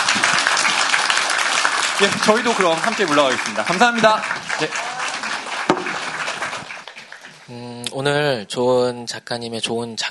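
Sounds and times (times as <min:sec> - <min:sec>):
audience applause: 0:00.0 - 0:07.6
speech: 0:02.0 - 0:04.8, 0:07.5 - 0:10.1.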